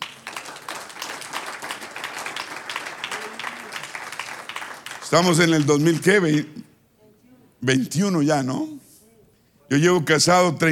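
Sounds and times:
applause: 0.0s - 6.6s
speech: 5.1s - 6.6s, 7.6s - 8.8s, 9.7s - 10.7s.

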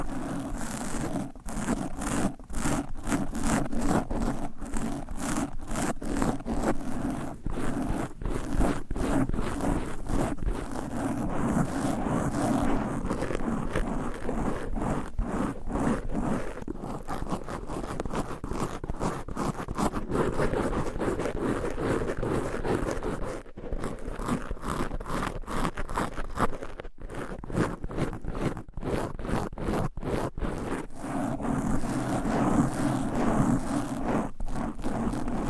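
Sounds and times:
nails scratching across microphone covers: 0.0s - 35.4s.

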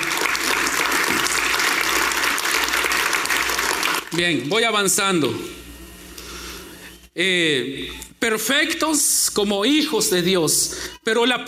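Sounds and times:
audience applause: 0.0s - 4.5s
speech: 4.2s - 5.6s, 7.2s - 11.4s.

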